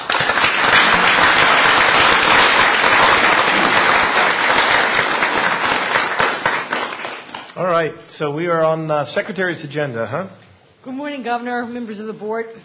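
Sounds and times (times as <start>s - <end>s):
audience applause: 0.0s - 7.5s
speech: 7.8s - 12.6s.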